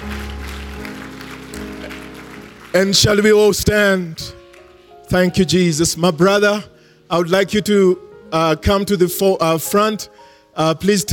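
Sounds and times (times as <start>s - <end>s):
low musical drone: 0.0s - 3.6s
audience clapping in praise: 0.0s - 3.8s, 4.4s - 4.8s
speech: 2.7s - 4.4s, 5.1s - 11.1s.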